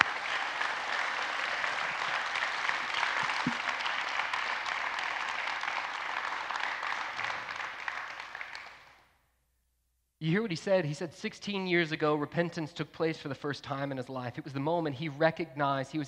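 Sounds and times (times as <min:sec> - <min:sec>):
audience applause: 0:00.0 - 0:08.9
speech: 0:10.3 - 0:16.0.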